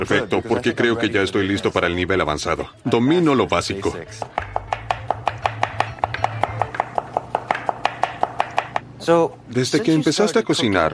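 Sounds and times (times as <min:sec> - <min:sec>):
speech: 0:00.0 - 0:04.6, 0:09.0 - 0:10.9
knife chopping food thinly on a cutting board: 0:04.2 - 0:08.9.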